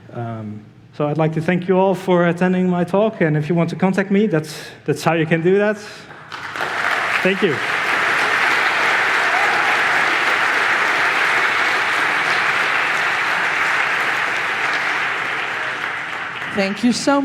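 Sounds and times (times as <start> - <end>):
speech: 0.1 - 6.5, 7.2 - 7.8, 16.6 - 17.2
audience applause: 6.1 - 17.2.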